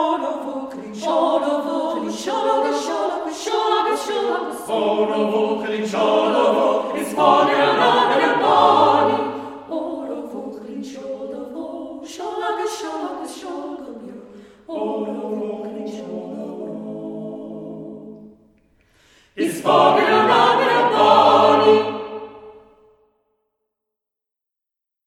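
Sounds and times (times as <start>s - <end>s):
SATB choir singing: 0.0s - 18.5s, 19.3s - 22.8s.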